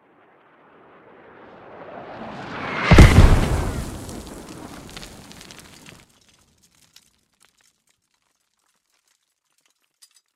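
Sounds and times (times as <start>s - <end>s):
mortar impact at 50m: 2.9s - 6.0s.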